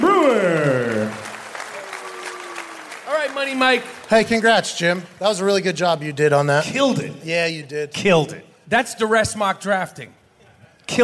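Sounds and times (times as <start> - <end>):
audience applause: 0.0 - 6.1
speech: 3.5 - 10.2, 10.9 - 11.0.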